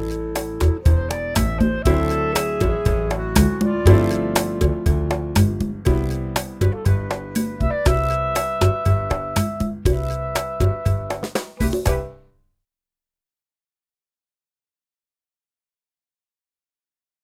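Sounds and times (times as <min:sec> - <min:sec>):
clarinet: 0:00.0 - 0:12.2.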